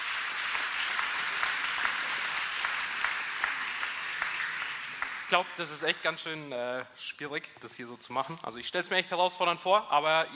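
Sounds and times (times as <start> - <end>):
audience clapping for the technical crew at a church event: 0.0 - 6.2
speech: 5.3 - 10.3.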